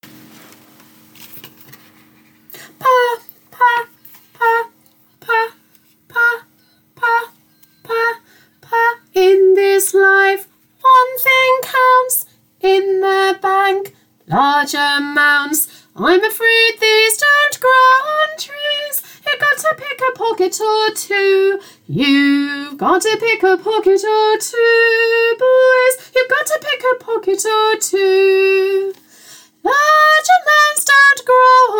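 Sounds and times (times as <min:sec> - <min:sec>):
soprano part intro: 0:02.8 - 0:29.0, 0:29.6 - 0:31.7.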